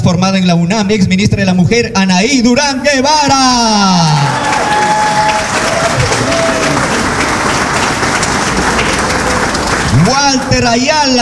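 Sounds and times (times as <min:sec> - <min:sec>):
speech: 0:00.1 - 0:04.6, 0:10.1 - 0:11.2
audience applause: 0:04.2 - 0:10.5.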